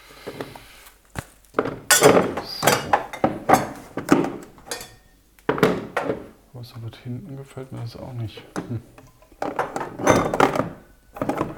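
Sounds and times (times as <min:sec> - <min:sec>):
dishes and cups clattering while unloaded from a dishwasher: 0:01.6 - 0:06.4, 0:07.7 - 0:11.5
speech: 0:07.1 - 0:09.0.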